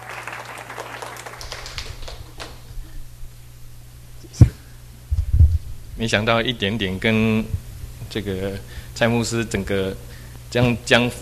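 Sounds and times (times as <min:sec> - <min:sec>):
audience clapping: 0:00.0 - 0:03.0
speech: 0:06.0 - 0:11.2.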